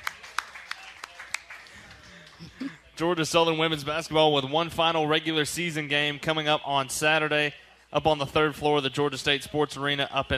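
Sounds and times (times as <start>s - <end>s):
hand claps from one person: 0.0s - 2.6s
speech: 3.0s - 10.3s.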